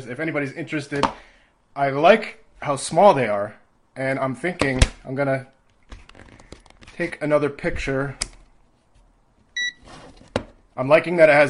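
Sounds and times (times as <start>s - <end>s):
speech: 0.0s - 5.6s, 7.0s - 8.2s, 10.8s - 11.4s
digital multimeter beep: 9.6s - 9.8s.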